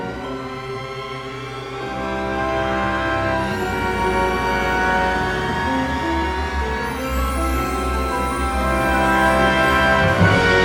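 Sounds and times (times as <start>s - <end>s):
ascending sound: 0.2s - 10.5s.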